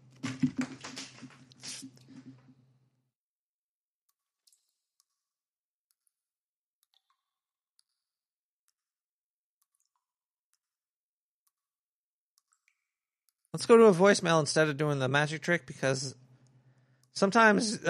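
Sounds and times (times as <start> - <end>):
deck of playing cards being shuffled: 0.2 - 2.4
speech: 13.6 - 16.2, 17.2 - 17.8.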